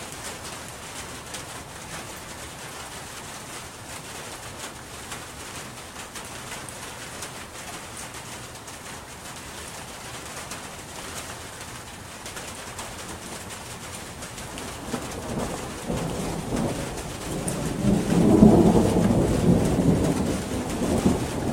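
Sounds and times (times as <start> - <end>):
August thunderstorm: 14.5 - 21.5.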